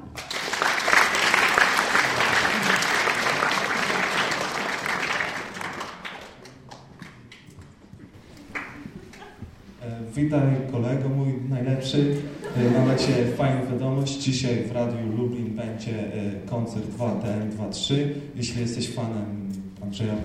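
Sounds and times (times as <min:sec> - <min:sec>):
audience applause: 0:00.0 - 0:07.4, 0:08.3 - 0:09.3
laughter: 0:01.1 - 0:05.7, 0:08.2 - 0:09.5, 0:11.9 - 0:13.8
speech: 0:10.2 - 0:20.2.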